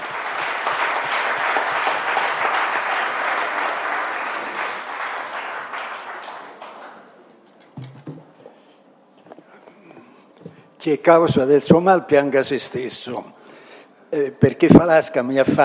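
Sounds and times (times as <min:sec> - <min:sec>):
applause: 0:00.0 - 0:07.2
speech: 0:10.8 - 0:13.4, 0:14.1 - 0:15.6.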